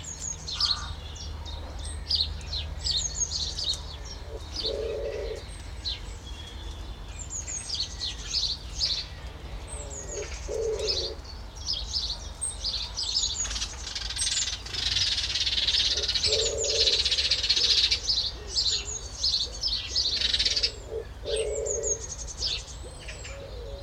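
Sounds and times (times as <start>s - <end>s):
garden ambience in Suffolk UK: 0.0s - 23.8s.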